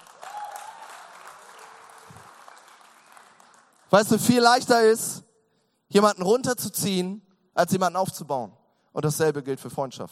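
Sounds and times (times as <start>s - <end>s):
audience clapping: 0.0s - 4.6s
speech: 3.9s - 5.2s, 5.9s - 10.1s.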